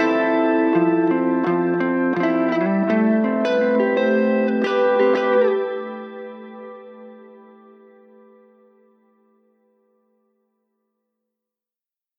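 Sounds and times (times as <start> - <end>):
guitar ringtone in E minor: 0.0 - 8.9.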